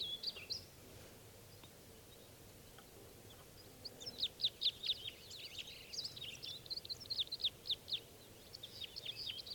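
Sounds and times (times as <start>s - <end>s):
birds chirping and singing in spruce trees: 0.0s - 0.7s, 3.2s - 9.5s.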